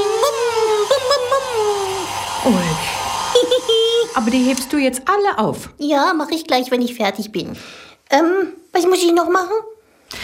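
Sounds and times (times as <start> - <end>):
hair dryer blowing: 0.0 - 5.2
speech: 2.4 - 2.9, 4.2 - 10.2.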